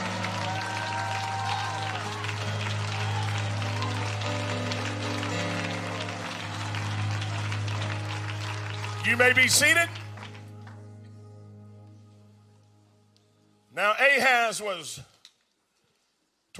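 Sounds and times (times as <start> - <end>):
audience shouting: 0.0 - 2.3
audience clapping: 0.0 - 10.9
speech: 9.0 - 10.0, 14.5 - 15.1.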